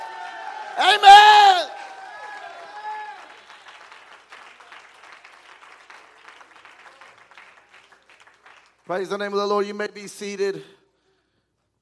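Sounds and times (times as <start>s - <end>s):
audience shouting: 0.0s - 3.3s
audience clapping: 0.0s - 9.6s
speech: 0.8s - 1.2s, 8.9s - 10.8s.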